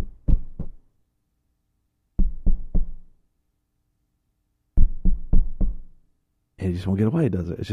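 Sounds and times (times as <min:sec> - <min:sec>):
knocking on a door: 0:00.0 - 0:00.8, 0:02.2 - 0:03.0, 0:04.8 - 0:05.9
speech: 0:06.6 - 0:07.7.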